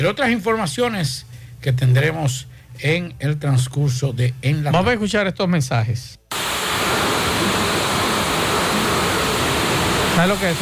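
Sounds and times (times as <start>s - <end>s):
speech: 0.0s - 6.2s, 10.2s - 10.6s
heavy rain downpour: 6.3s - 10.6s.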